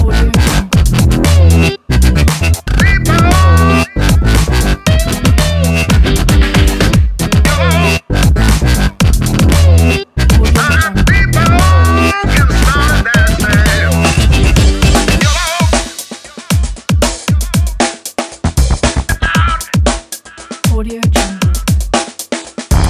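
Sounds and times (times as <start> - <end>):
groovy electro blues song: 0.0 - 22.8.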